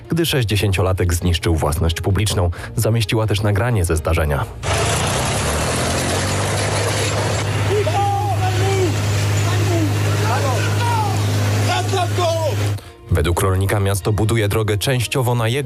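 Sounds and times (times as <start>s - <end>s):
speech: 0.2s - 5.2s, 13.2s - 15.6s
tractor engine droning: 4.6s - 12.9s
voices calling out: 7.0s - 12.8s.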